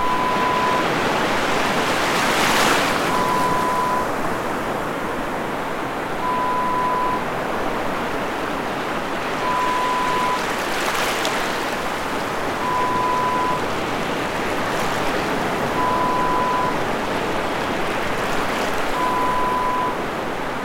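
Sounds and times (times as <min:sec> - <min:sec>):
beach waves: 0:00.0 - 0:20.6.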